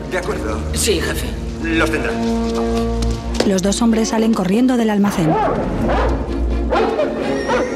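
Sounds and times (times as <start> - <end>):
speech: 0.1 - 7.0
caged dogs hooked up to cables barking and yipping: 5.4 - 7.7
caged dogs whimpering: 6.7 - 7.7.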